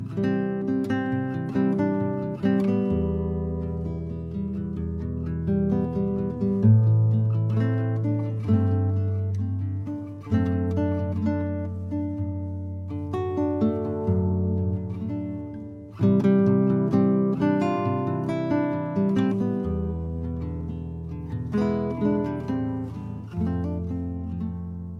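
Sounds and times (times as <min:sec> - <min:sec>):
acoustic music: 0:00.0 - 0:24.9.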